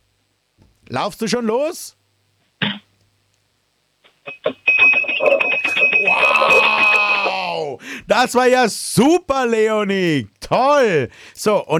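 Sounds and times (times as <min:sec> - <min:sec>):
speech: 0:00.9 - 0:02.0, 0:08.1 - 0:11.7
spoon banging on a drinking glass: 0:04.8 - 0:06.9.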